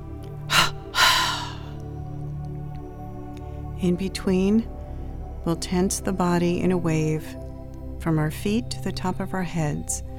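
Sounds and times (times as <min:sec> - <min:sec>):
long breath in a breathing exercise: 0:00.5 - 0:01.8
short sharp exhalation in a breathing exercise: 0:00.5 - 0:01.8
speech: 0:03.8 - 0:04.8, 0:05.4 - 0:07.4, 0:08.0 - 0:10.1.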